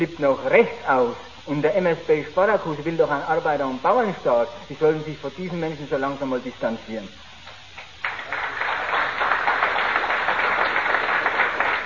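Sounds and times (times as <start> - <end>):
speech: 0.0 - 7.2
applause: 7.8 - 11.8.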